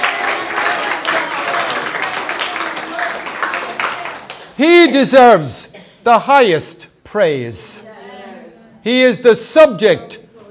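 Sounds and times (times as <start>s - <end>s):
round of applause: 0.0s - 4.7s
speech: 4.6s - 7.8s, 8.8s - 10.2s.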